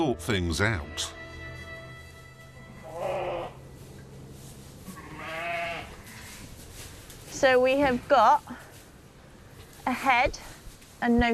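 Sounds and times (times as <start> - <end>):
speech: 0.0 - 1.2, 7.4 - 8.6, 9.8 - 11.3
sheep bleating in a barn: 2.8 - 3.6, 4.8 - 6.4.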